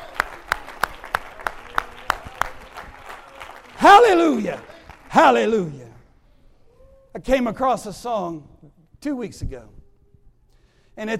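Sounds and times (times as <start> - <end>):
audience clapping hands: 0.0 - 5.8
speech: 3.8 - 5.8, 7.2 - 9.8, 11.0 - 11.1.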